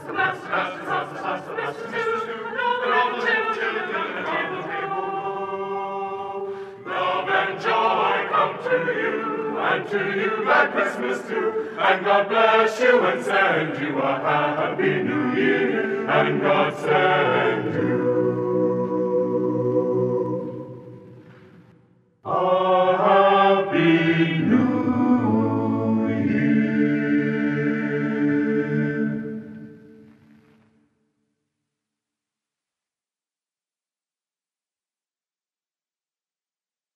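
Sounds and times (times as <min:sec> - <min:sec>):
Christmas a cappella singing: 0:00.0 - 0:21.5, 0:22.2 - 0:30.1.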